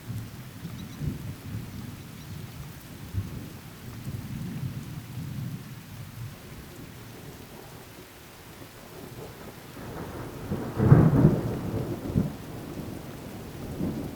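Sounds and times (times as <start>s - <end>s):
light rain: 0.0s - 14.1s
thunder: 9.0s - 14.1s.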